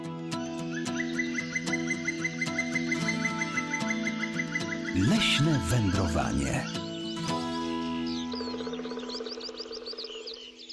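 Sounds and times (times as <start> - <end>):
skylark singing: 0.4 - 10.7
speech: 5.0 - 6.8.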